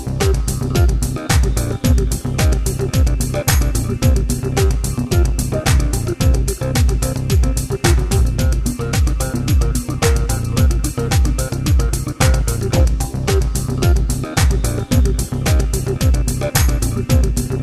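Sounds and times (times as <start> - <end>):
house music loop: 0.0 - 17.6.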